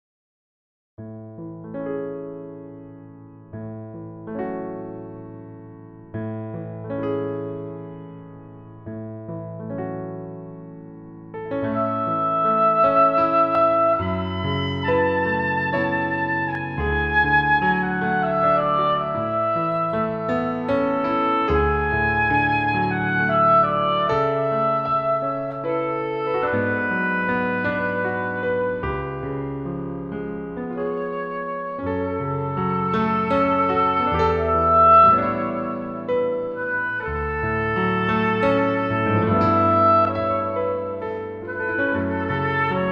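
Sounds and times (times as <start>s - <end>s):
piano cover: 1.0s - 42.9s
oboe reference: 11.5s - 42.9s.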